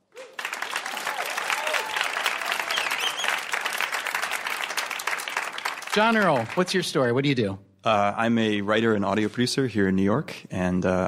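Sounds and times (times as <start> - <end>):
audience applause welcoming a contestant on a live game show: 0.0 - 7.0
speech: 6.0 - 11.0.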